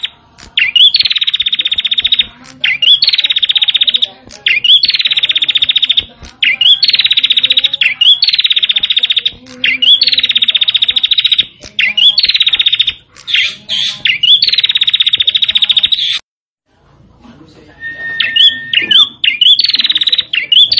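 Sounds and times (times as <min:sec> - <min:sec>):
prinia buzzy song: 0:00.0 - 0:16.2, 0:17.1 - 0:20.7.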